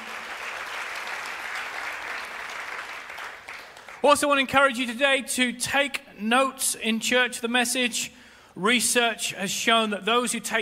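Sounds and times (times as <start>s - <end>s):
church audience applauding: 0.0s - 4.2s
speech: 4.0s - 10.6s.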